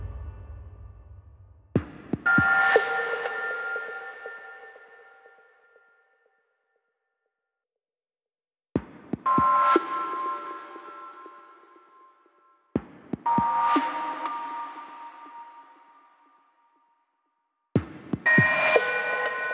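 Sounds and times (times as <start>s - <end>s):
drums at 120 BPM: 0.0s - 3.5s, 8.8s - 10.1s, 12.8s - 13.9s, 17.8s - 19.5s.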